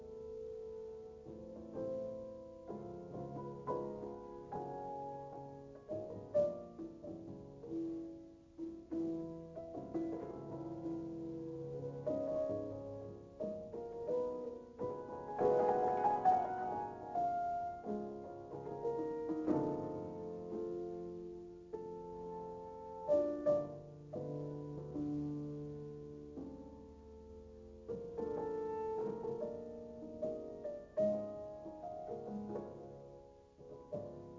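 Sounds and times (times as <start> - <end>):
piano note G5: 0.0 - 34.3.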